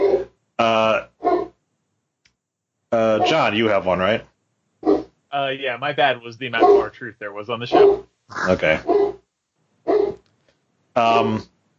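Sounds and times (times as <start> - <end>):
dog barking loudly and throatily: 0.0 - 0.3, 1.2 - 1.5, 3.0 - 3.5, 6.5 - 6.9, 7.7 - 8.0, 8.7 - 9.2, 9.9 - 10.2
speech: 2.9 - 4.3, 5.3 - 9.0, 11.0 - 11.5.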